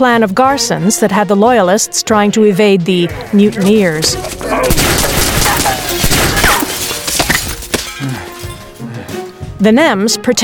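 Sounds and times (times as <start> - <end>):
speech: 0.0 - 5.2, 9.6 - 10.4
gunfire: 4.7 - 7.2.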